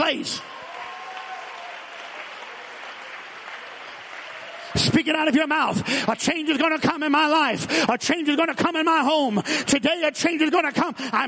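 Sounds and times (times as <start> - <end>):
speech: 0.0 - 0.6, 4.7 - 11.2
audience clapping hands: 0.0 - 6.8.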